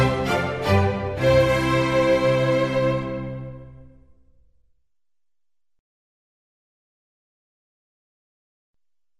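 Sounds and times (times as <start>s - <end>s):
concerto for strings in C major: 0.0s - 4.0s.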